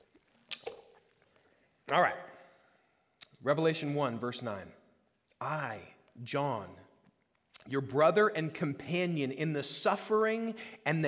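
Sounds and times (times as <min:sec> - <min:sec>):
sipping water: 0:00.0 - 0:03.4
speech: 0:01.9 - 0:02.3, 0:03.4 - 0:04.8, 0:05.4 - 0:06.8, 0:07.6 - 0:11.0.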